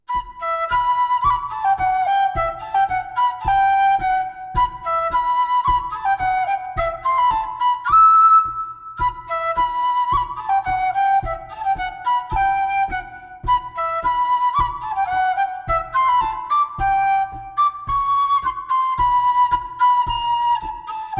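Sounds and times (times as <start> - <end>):
old folk tune from Auvergne: 0.0 - 21.1.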